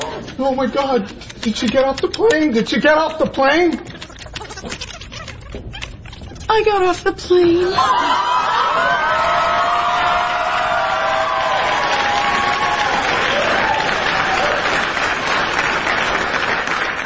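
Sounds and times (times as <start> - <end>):
speech: 0.4 - 4.0, 4.6 - 4.9, 6.5 - 9.0
large audience applause: 8.0 - 17.0.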